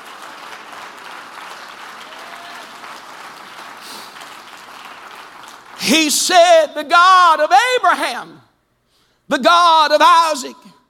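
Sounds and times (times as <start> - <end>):
audience clapping hands: 0.0 - 6.5
speech: 5.9 - 8.5, 9.3 - 10.7.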